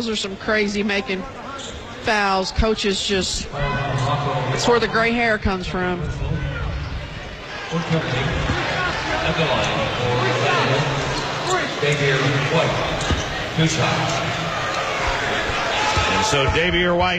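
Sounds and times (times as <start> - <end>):
speech: 0.0 - 6.4, 7.7 - 8.5, 9.3 - 10.9, 11.8 - 13.0, 13.6 - 14.2, 16.2 - 17.1
commentator talking: 0.0 - 6.6, 7.7 - 14.5
arena crowd murmur: 0.0 - 16.8
basketball dribbled before a free throw: 8.3 - 8.8, 12.7 - 16.9.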